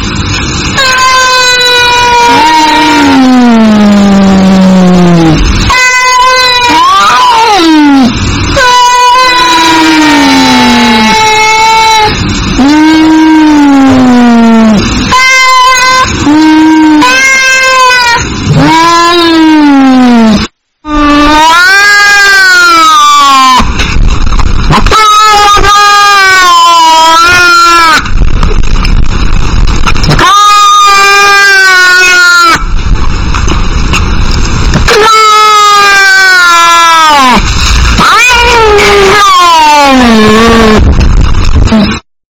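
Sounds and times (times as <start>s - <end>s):
distorted rumbling noise: 0.0s - 42.1s
domestic cat meowing: 0.8s - 23.7s, 30.1s - 32.6s, 34.9s - 37.4s, 38.0s - 40.8s.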